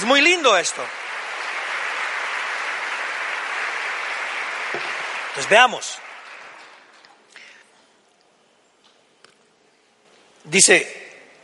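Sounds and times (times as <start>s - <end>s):
audience applause: 0.0s - 7.3s
speech: 0.1s - 1.1s, 5.4s - 6.1s, 10.5s - 11.0s.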